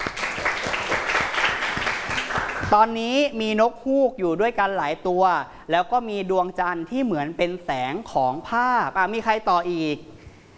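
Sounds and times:
applause from a group at a class discussion: 0.0 - 2.9
speech: 2.7 - 10.1.

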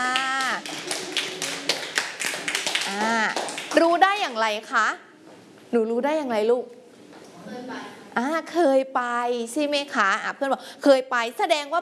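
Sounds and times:
children clapping for a classmate: 0.0 - 4.4
speech: 3.8 - 5.1, 5.7 - 6.8, 7.4 - 11.8.

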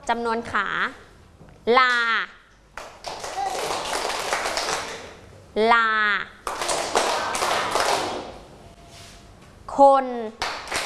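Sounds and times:
speech: 0.1 - 2.4, 5.6 - 6.3, 9.8 - 10.4
hand clapping: 2.7 - 5.2, 6.4 - 8.4, 10.4 - 10.8.

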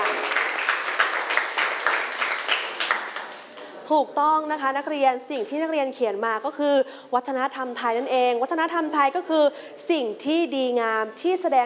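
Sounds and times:
students clapping hands: 0.0 - 3.5
speech: 3.9 - 11.6.

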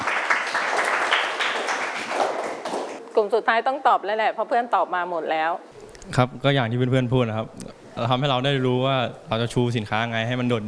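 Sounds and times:
classroom applause for group four: 0.0 - 3.0
speech: 3.2 - 10.6.

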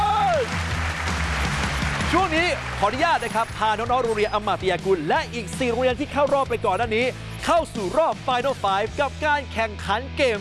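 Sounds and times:
audience applause: 0.0 - 3.9
speech: 2.1 - 10.3.

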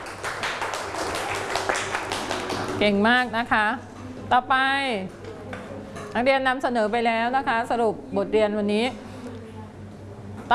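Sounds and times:
students in a classroom clapping for a classmate: 0.0 - 2.8
speech: 2.8 - 5.3, 6.1 - 9.0.

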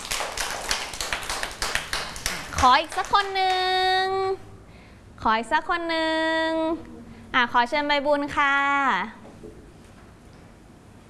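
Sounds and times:
children applauding a classmate: 0.0 - 3.3
speech: 2.6 - 4.5, 5.2 - 9.2.

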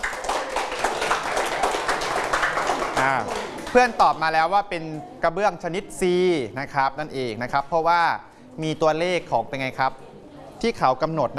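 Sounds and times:
classroom clapping for a student: 0.0 - 4.3
speech: 3.0 - 10.0, 10.6 - 11.3.

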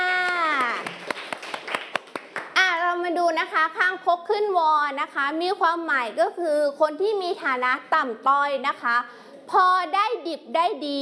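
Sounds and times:
children clapping for a classmate's correct answer: 0.1 - 2.6
speech: 3.6 - 11.0.

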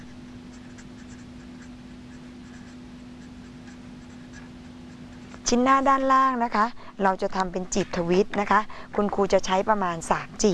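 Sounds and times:
pen or pencil writing on a sewing pattern piece: 0.0 - 5.3
speech: 5.5 - 10.5.

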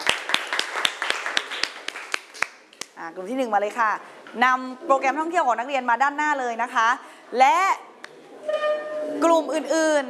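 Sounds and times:
class clapping for presenters: 0.0 - 3.0
speech: 3.1 - 7.8, 9.2 - 10.0.

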